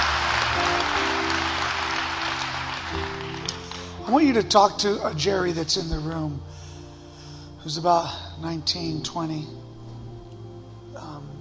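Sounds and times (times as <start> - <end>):
crowd clapping: 0.0 - 4.0
low sustained musical tones: 0.0 - 11.3
speech: 4.1 - 6.6, 7.6 - 9.6.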